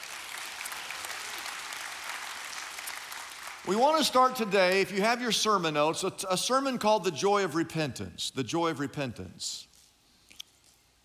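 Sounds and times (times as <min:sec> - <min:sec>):
audience clapping: 0:00.0 - 0:04.9
speech: 0:03.6 - 0:09.7.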